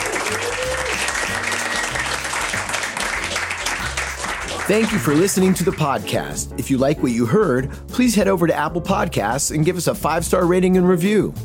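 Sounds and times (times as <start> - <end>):
audience applause: 0.0 - 6.1
speech: 4.7 - 11.4.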